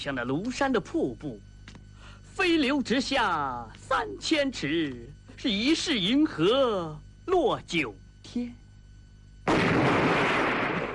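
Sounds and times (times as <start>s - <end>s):
speech: 0.0s - 1.5s, 2.4s - 8.6s
bomb explosions in an air raid: 9.4s - 10.9s
gunfire in an air raid: 9.5s - 10.9s.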